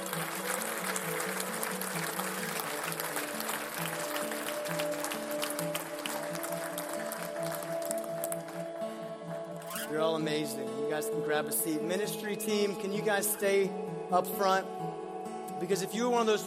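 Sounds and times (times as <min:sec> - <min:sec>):
audience applause: 0:00.0 - 0:09.0
speech: 0:10.0 - 0:15.0, 0:15.6 - 0:16.4.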